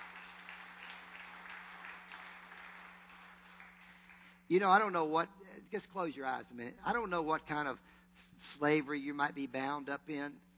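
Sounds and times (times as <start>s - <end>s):
audience clapping: 0.0s - 4.5s
low electrical hum: 0.0s - 10.5s
speech: 4.5s - 10.5s.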